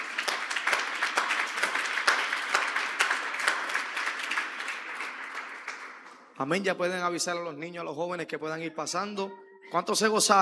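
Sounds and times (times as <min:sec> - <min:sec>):
audience applause: 0:00.0 - 0:06.3
speech: 0:06.4 - 0:10.4.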